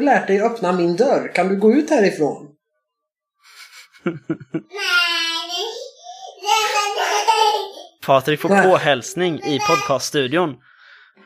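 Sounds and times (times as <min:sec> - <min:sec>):
speech: 0:00.0 - 0:02.5, 0:04.0 - 0:05.8, 0:06.4 - 0:10.7
laughter: 0:03.5 - 0:04.8
young child making noise in podcast studio: 0:04.8 - 0:07.8.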